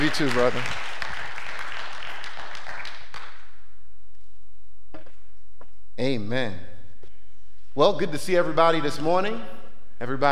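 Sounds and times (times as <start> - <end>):
crowd applauding: 0.0 - 3.5
stray claps: 0.0 - 3.6
speech: 0.1 - 1.0, 6.0 - 6.7, 7.8 - 10.3.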